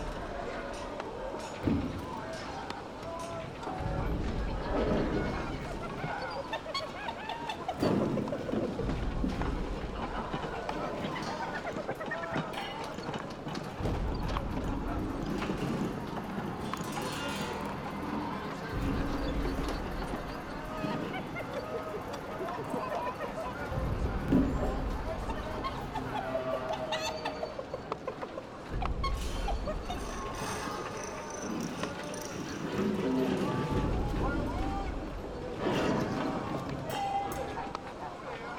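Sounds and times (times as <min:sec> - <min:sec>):
kobold junkyard village ambience: 0:00.0 - 0:38.5
laughter: 0:00.0 - 0:38.5.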